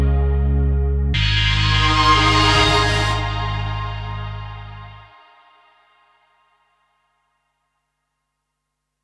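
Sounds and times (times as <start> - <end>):
guitar: 0.0 - 5.1.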